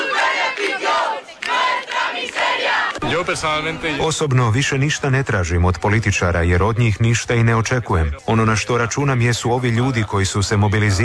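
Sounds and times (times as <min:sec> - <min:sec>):
large protest crowd chanting a slogan in unison: 0:00.0 - 0:05.1, 0:08.0 - 0:11.0
laughter: 0:02.6 - 0:11.0
speech: 0:03.1 - 0:11.0.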